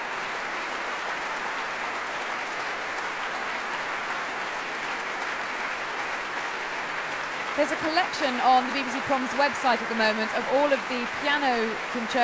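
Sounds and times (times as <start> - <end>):
orchestra and audience applauding: 0.0 - 12.2
speech: 7.6 - 12.2.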